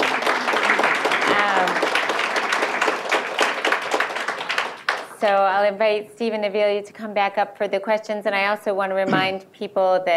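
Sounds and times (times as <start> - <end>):
audience applause: 0.0 - 5.2
speech: 5.2 - 10.1.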